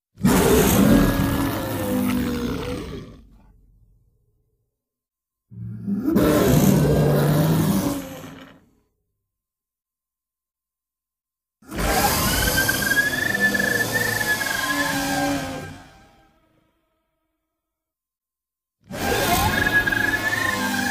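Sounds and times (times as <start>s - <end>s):
roar: 0.2s - 4.1s, 5.5s - 8.9s, 11.6s - 16.9s, 18.8s - 20.9s.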